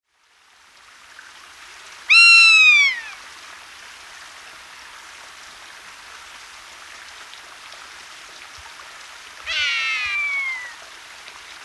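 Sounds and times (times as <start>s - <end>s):
rough-legged buzzard giving a descending mewing cry: 2.1s - 3.2s, 9.5s - 10.8s.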